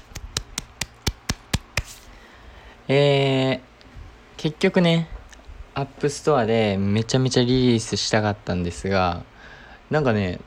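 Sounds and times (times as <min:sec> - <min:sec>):
single person clapping: 0:00.0 - 0:02.0
speech: 0:02.9 - 0:03.6, 0:04.4 - 0:05.1, 0:05.8 - 0:09.3, 0:09.9 - 0:10.4.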